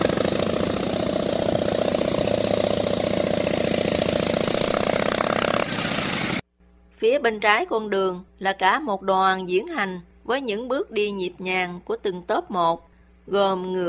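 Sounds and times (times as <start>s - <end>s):
Harley-Davidson motorcycle engines rumbling: 0.0s - 6.4s
speech: 7.0s - 13.8s.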